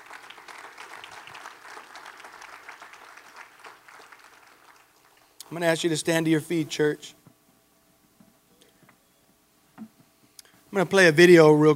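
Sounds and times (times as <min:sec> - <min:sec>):
large audience applause in a reverberant hall: 0:00.0 - 0:05.3
speech: 0:05.5 - 0:07.2, 0:10.8 - 0:11.7.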